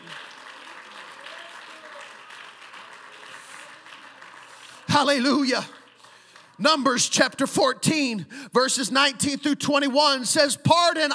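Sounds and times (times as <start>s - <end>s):
audience applause: 0.0s - 6.9s
speech: 5.0s - 5.8s, 6.6s - 11.1s.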